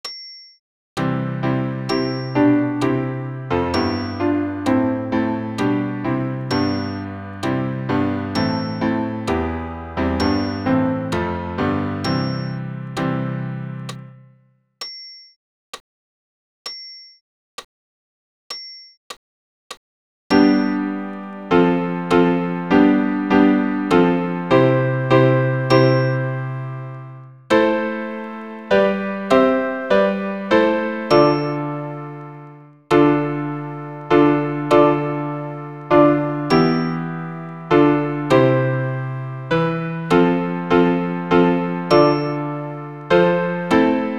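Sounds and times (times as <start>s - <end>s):
piano: 1.0s - 14.5s, 20.3s - 44.1s.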